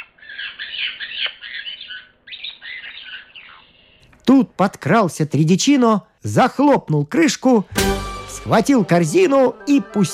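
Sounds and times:
parrot squawking: 0.0s - 4.0s
speech: 4.3s - 10.1s.

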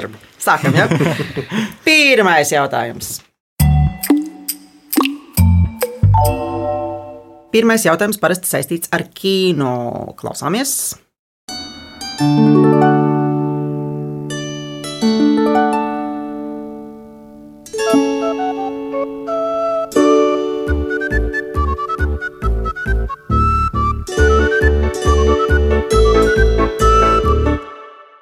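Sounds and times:
speech: 0.0s - 3.3s, 7.5s - 11.0s, 12.2s - 13.2s
laughter: 0.6s - 1.7s
instrumental theme melody from an animated film: 3.6s - 7.6s, 11.5s - 28.2s.

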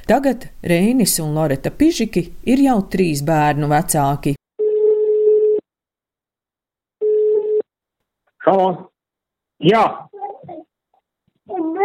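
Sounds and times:
speech: 0.1s - 4.4s, 8.4s - 8.9s, 9.6s - 10.0s
outgoing phone call ringing tone: 4.6s - 5.6s, 7.0s - 7.6s.

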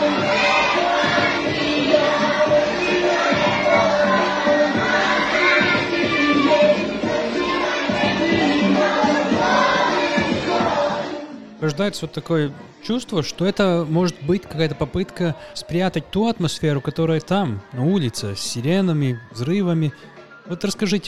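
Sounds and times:
group of children singing along to a song: 0.0s - 11.5s
speech: 11.7s - 21.0s.

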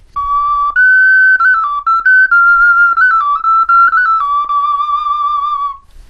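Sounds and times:
small clay bird whistle being played: 0.1s - 5.9s.

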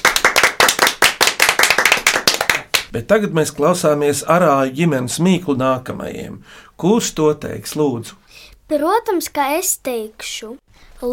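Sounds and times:
audience applause for riddle quiz winners: 0.0s - 2.9s
speech: 2.9s - 11.1s.

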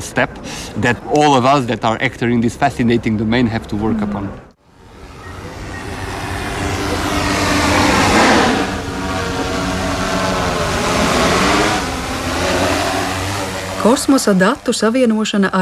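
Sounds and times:
speech: 0.0s - 4.5s, 13.8s - 15.6s
drone flying with a buzzing whine: 3.8s - 15.6s.

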